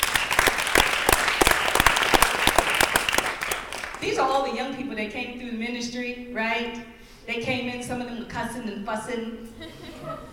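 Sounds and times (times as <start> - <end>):
audience applause: 0.0 - 4.0
speech: 4.0 - 10.3
laughter: 9.6 - 10.3.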